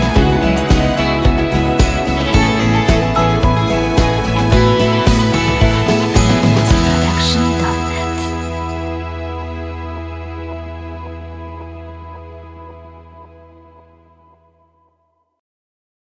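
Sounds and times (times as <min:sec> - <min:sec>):
inspirational acoustic folk rock music: 0:00.0 - 0:11.3.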